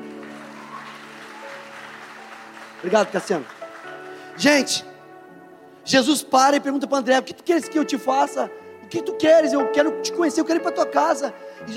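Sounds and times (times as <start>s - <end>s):
crowd clapping: 0.0s - 5.0s
speech: 2.8s - 3.6s, 4.4s - 4.9s, 5.9s - 11.7s.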